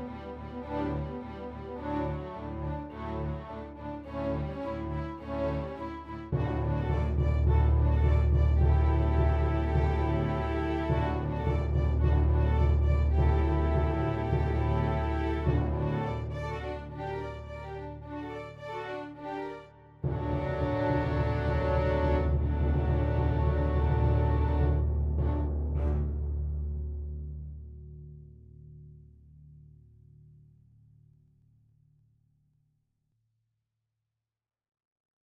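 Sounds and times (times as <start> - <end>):
cello karaoke track: 0.0 - 26.8.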